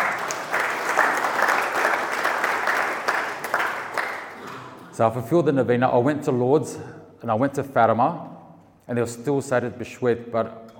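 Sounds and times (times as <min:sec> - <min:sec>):
audience applause: 0:00.0 - 0:04.8
speech: 0:05.0 - 0:08.3, 0:08.9 - 0:10.7.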